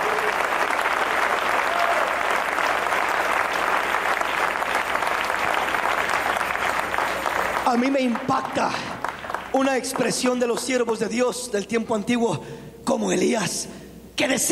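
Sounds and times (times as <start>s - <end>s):
audience clapping hands: 0.0s - 11.3s
speech: 7.8s - 14.5s.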